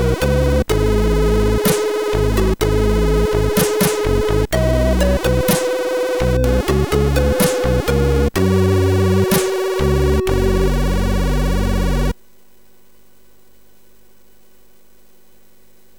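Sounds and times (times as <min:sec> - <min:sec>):
game music on a MOS6581R4 sound chip: 0:00.0 - 0:12.0.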